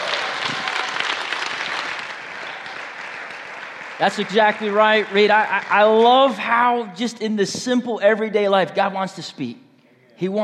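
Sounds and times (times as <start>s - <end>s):
audience applause: 0.0s - 6.8s
speech: 4.0s - 9.6s, 10.2s - 10.4s.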